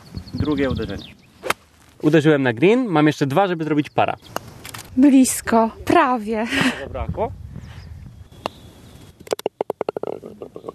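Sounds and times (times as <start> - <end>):
speech: 0.4 - 1.2, 2.0 - 4.4, 5.0 - 7.4
golf ball dropping into the hole and bouncing in the cup: 9.2 - 10.3.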